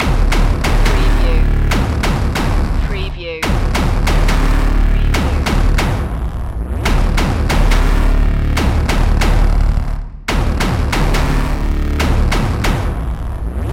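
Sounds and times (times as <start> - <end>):
electronic music loop: 0.0 - 13.7.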